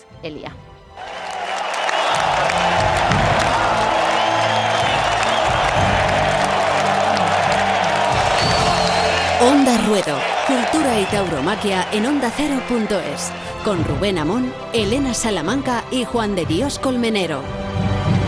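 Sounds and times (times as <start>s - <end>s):
speech: 0.2s - 1.1s, 9.4s - 17.6s
cheering: 1.0s - 13.9s
ovation with applause: 1.0s - 15.2s.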